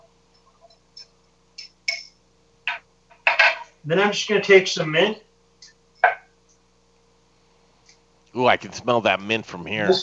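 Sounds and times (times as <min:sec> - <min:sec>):
bar spoon clinking against a glass while stirring sugar: 0:01.6 - 0:02.1
speech: 0:03.8 - 0:05.2, 0:08.4 - 0:10.0.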